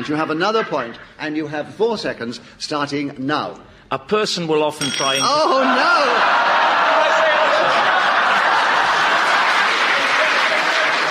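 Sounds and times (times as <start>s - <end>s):
scattered laughter: 0.0s - 1.1s, 5.3s - 11.0s
speech: 0.0s - 6.5s
crowd applauding: 5.4s - 11.0s.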